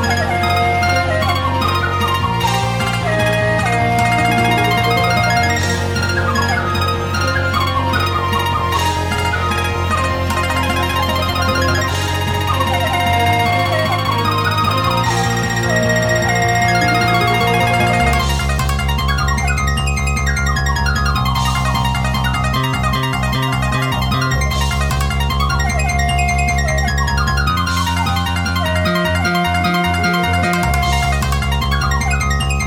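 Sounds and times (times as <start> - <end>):
shakuhachi flute: 0.0 - 18.6, 25.6 - 32.6
koto: 0.0 - 32.6
shamisen: 0.0 - 32.6.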